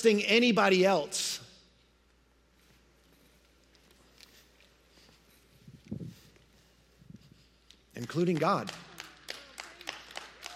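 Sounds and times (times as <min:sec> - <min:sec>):
speech: 0:00.0 - 0:01.4, 0:08.0 - 0:08.9
audience clapping: 0:07.7 - 0:10.5.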